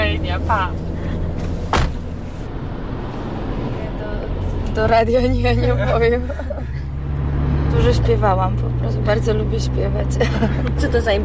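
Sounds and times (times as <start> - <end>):
car driving fast along a Warsaw roundabout: 0.0 - 11.2
speech: 0.4 - 0.9, 4.8 - 6.8, 7.7 - 11.2
laughter: 5.6 - 6.9, 10.2 - 11.0.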